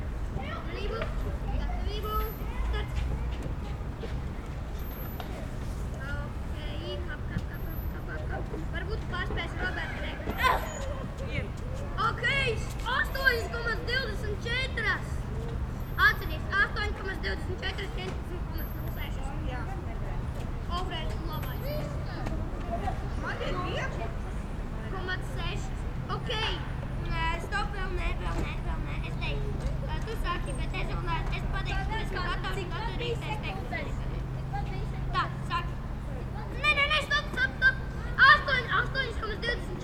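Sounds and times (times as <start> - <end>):
suburban playground ambience: 0.0 - 39.8.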